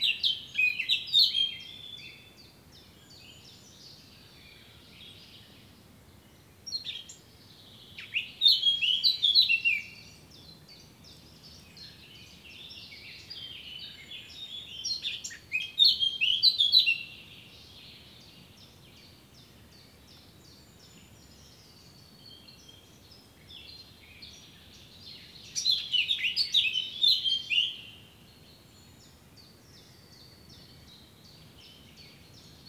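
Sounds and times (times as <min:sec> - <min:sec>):
Eurasian blackcap singing: 0:00.0 - 0:02.3, 0:06.7 - 0:17.3, 0:23.5 - 0:28.0.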